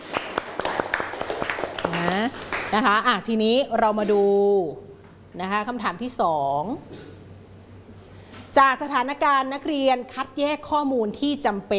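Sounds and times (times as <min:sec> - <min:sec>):
classroom students clapping: 0:00.0 - 0:03.0
speech: 0:02.7 - 0:07.1, 0:08.6 - 0:11.7.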